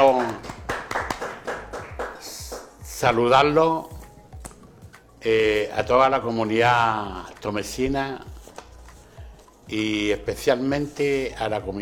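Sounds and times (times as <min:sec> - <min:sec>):
a few people clapping for a guest being introduced: 0:00.0 - 0:03.0
speech: 0:03.0 - 0:03.9, 0:05.2 - 0:08.3, 0:09.7 - 0:11.7.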